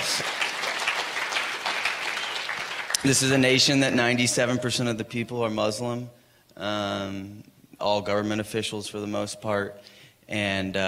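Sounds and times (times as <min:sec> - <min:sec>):
round of applause: 0:00.0 - 0:03.4
speech: 0:03.0 - 0:10.8.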